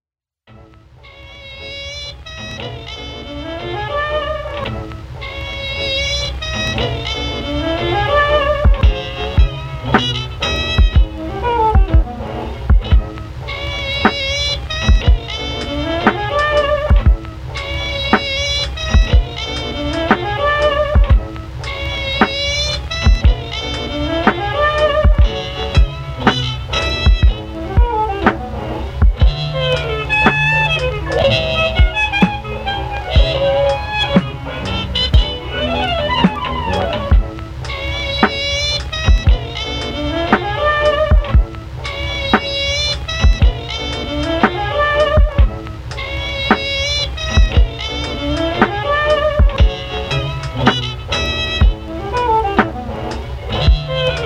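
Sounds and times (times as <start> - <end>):
jazz music: 0.5 - 54.2.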